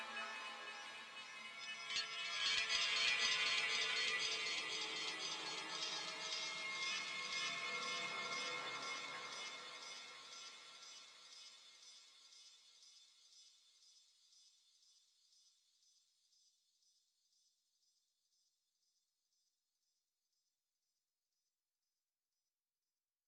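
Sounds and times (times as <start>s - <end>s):
music: 0.0s - 14.2s.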